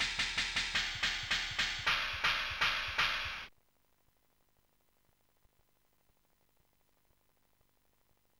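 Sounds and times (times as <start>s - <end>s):
synth mix: 0.0s - 3.5s.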